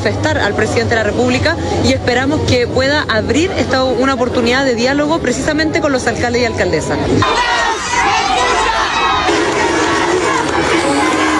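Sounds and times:
speech: 0.0s - 7.6s
large crowd shouting and jeering: 7.0s - 11.3s
scattered clapping: 9.0s - 11.3s.

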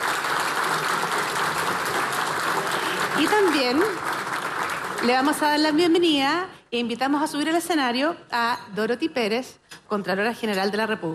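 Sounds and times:
audience applause: 0.0s - 5.6s
speech: 3.2s - 4.1s, 5.0s - 11.1s.

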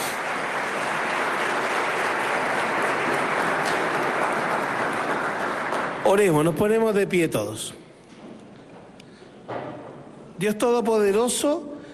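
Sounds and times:
audience applauding: 0.0s - 6.9s
speech: 6.1s - 7.8s, 10.4s - 11.7s.

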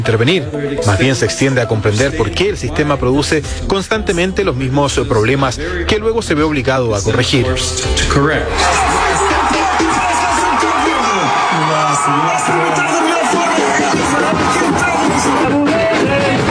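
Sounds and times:
speech: 0.0s - 9.0s
crowd cheering Cape Verde's World Cup draw: 0.5s - 2.4s, 7.7s - 16.4s.

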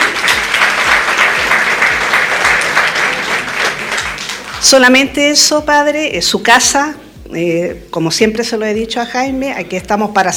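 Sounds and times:
audience applause: 0.0s - 4.6s
speech: 4.6s - 10.3s.

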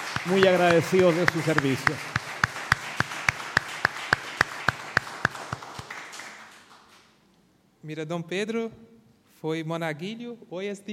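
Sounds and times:
audience applause: 0.0s - 7.0s
speech: 0.2s - 2.1s, 7.9s - 10.9s.

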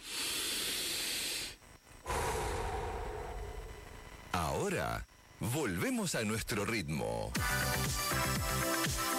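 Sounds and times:
deep breath: 0.0s - 4.0s
speech: 4.6s - 9.0s.

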